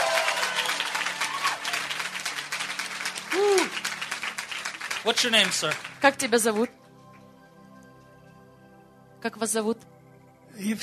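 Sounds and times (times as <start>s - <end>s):
person cheering or whooping: 0.0s - 1.8s, 3.3s - 3.8s
audience applause: 0.0s - 6.6s
speech: 5.0s - 6.8s, 9.2s - 9.9s, 10.6s - 10.8s.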